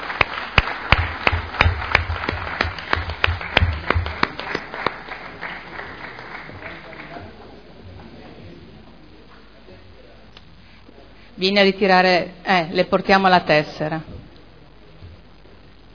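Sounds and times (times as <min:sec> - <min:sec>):
council applause: 0:00.0 - 0:07.6
speech: 0:11.4 - 0:14.1.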